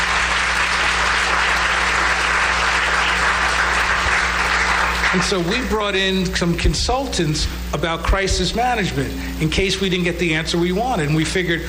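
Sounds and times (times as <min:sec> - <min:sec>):
audience applause: 0:00.0 - 0:05.6
speech: 0:05.2 - 0:11.6.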